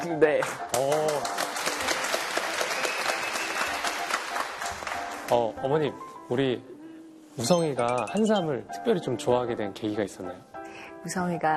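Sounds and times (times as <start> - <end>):
speech: 0.0 - 1.9, 5.3 - 6.7, 7.4 - 11.5
group applause: 0.7 - 5.3.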